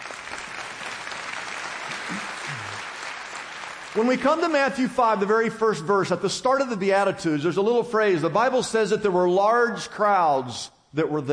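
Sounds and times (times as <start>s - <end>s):
audience clapping: 0.0s - 5.4s
speech: 4.0s - 11.3s.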